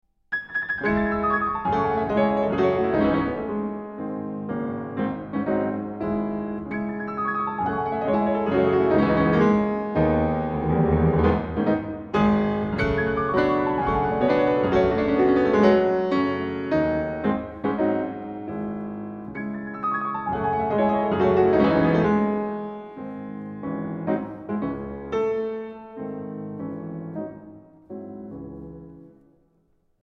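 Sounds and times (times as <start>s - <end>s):
classical prelude in C sharp minor: 0.3s - 29.5s.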